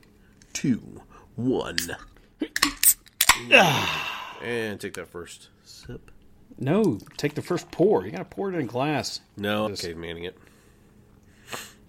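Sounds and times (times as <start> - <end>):
speech: 0.6 - 2.1, 3.4 - 10.5
beer cans cracking open: 1.8 - 3.6.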